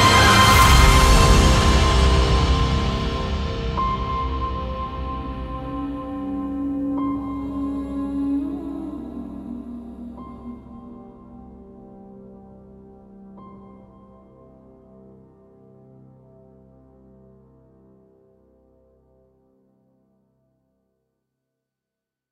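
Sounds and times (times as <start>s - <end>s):
epic hybrid orchestral music: 0.0s - 11.7s.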